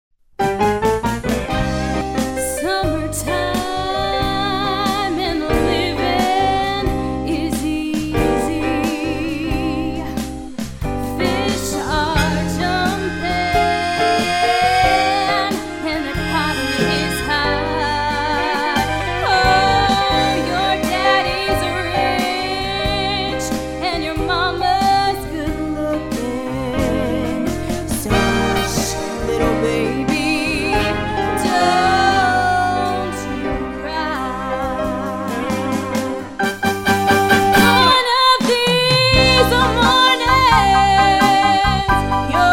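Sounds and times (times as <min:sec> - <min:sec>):
jazz music: 0:00.4 - 0:42.5.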